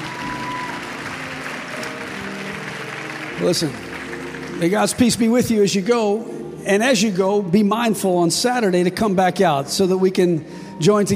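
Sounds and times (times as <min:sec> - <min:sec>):
audience applauding: 0:00.0 - 0:05.7
speech: 0:03.4 - 0:03.9, 0:04.6 - 0:11.1.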